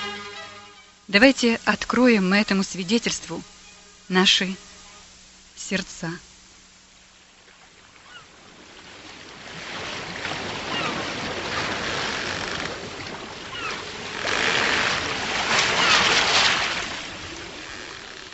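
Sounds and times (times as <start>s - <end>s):
speech: 1.1s - 4.6s, 5.6s - 6.2s
stormy Pacific Ocean waves against a ship: 7.5s - 18.3s.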